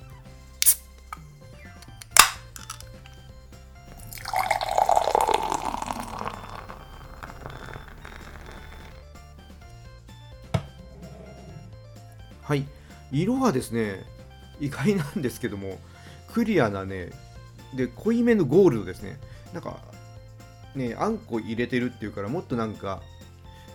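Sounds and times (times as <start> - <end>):
beer being opened: 0.6 - 1.2, 1.8 - 3.2
fizzy pour of beer: 3.9 - 9.0
speech: 12.5 - 19.9, 20.7 - 23.1.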